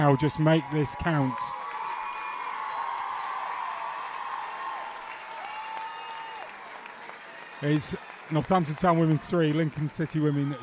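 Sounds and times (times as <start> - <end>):
speech: 0.0 - 1.8, 7.6 - 10.6
football crowd cheering and applauding a goal: 0.0 - 10.6.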